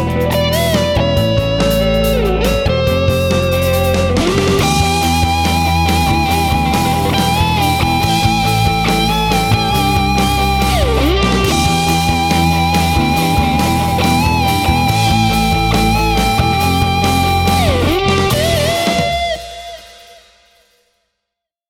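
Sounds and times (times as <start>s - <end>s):
Gibson overdriven guitar: 0.0s - 20.6s.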